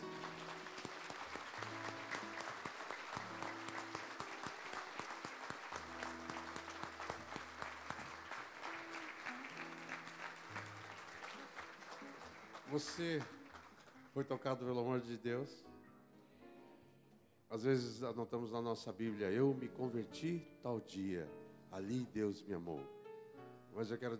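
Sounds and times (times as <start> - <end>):
audience applauding: 0.0 - 14.5
speech: 12.7 - 13.4, 14.2 - 15.7, 17.5 - 23.0, 23.7 - 24.1.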